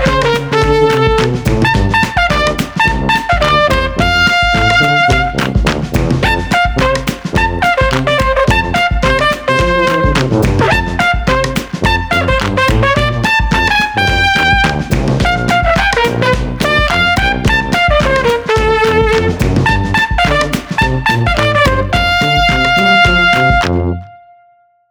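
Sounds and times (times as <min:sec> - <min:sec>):
percussion: 0:00.0 - 0:24.0
festive tuba: 0:00.0 - 0:24.3
festive trumpet: 0:00.0 - 0:24.6.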